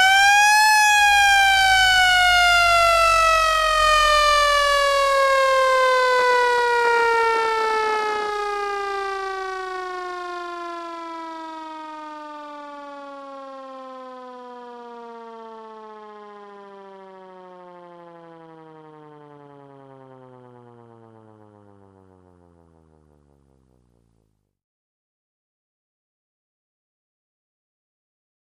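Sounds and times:
Federal siren air horn: 0.0 - 21.9.

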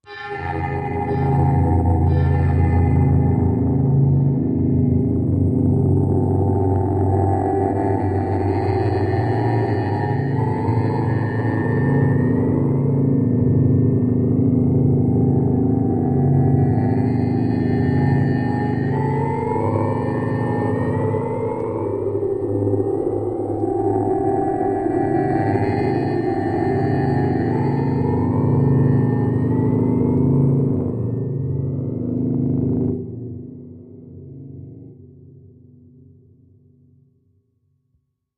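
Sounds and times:
eerie ambience: 0.0 - 35.9.

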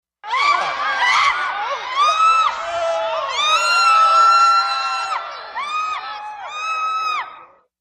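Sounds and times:
theater crowd screaming in fright: 0.2 - 7.7.

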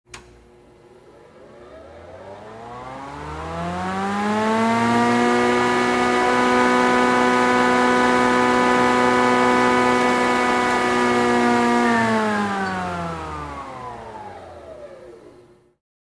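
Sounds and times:
large industrial saw: 1.8 - 14.8.

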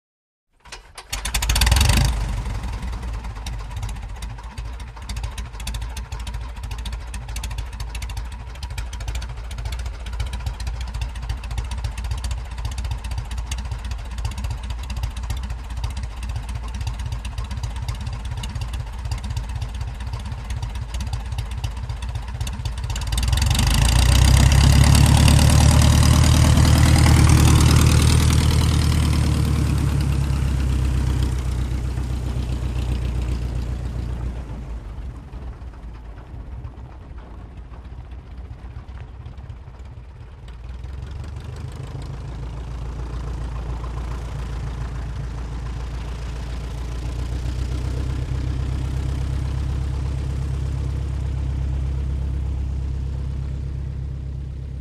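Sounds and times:
prop plane engine revving up and taxiing: 0.7 - 54.7
dirt grinding under prop plane wheels: 23.0 - 52.1.

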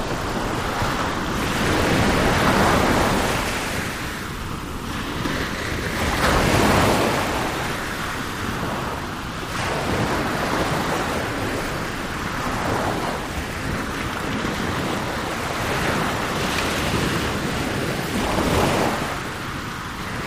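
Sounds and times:
ocean ambience: 0.0 - 20.2.

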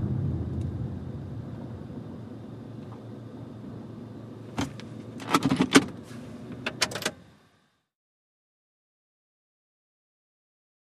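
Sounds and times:
sedan driving and stopping: 0.0 - 7.7.

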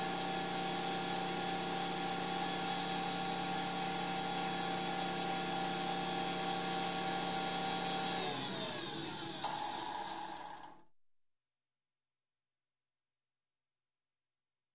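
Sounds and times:
wood shaper tool running: 0.2 - 10.8.

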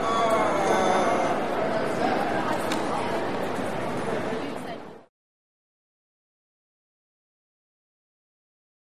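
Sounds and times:
huge marble interior lobby ambience: 0.0 - 5.1.

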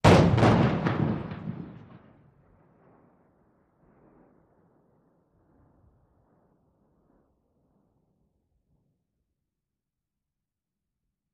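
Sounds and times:
30 feet of Primacord detonating: 0.0 - 2.7.

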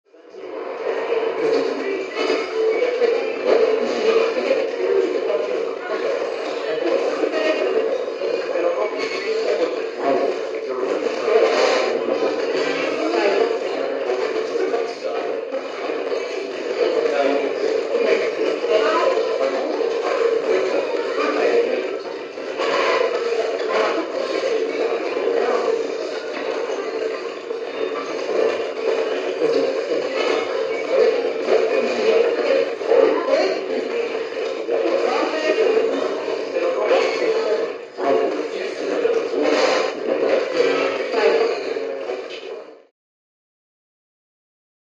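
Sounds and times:
eerie radio static: 0.3 - 42.9.

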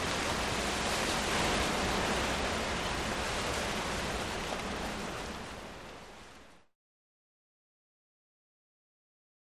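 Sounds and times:
heavy wind gusts in trees: 0.0 - 6.7.

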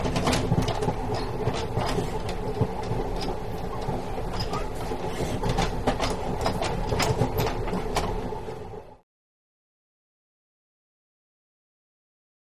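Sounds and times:
commuter train interior: 0.0 - 9.0.

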